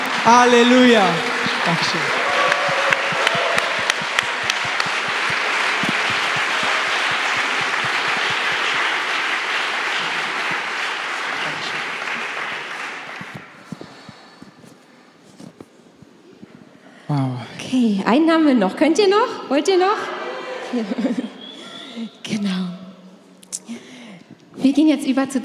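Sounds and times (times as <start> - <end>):
audience applause: 0.0 - 13.7
speech: 0.2 - 2.2, 18.1 - 20.9, 24.8 - 25.4
laughter: 19.9 - 22.0.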